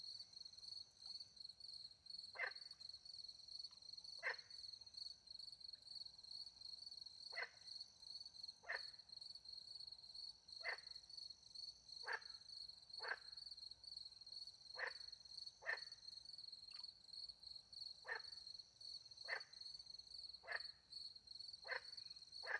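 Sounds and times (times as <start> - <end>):
frog croaking: 4.2 - 4.5, 8.6 - 9.0, 10.6 - 11.0, 12.0 - 12.4, 14.7 - 16.0, 18.0 - 18.4, 19.2 - 19.6, 20.4 - 20.8, 21.6 - 22.5.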